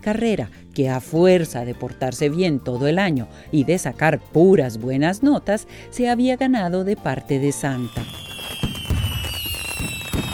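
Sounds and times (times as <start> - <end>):
speech: 0.0 - 8.2
fireworks exploding with dull booming pops: 7.9 - 10.3.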